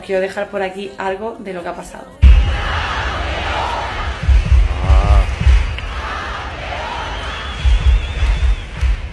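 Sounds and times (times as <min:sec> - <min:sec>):
speech: 0:00.0 - 0:02.2
concert crowd cheering and ovation: 0:02.2 - 0:09.1
heavy low thumps: 0:02.2 - 0:09.1.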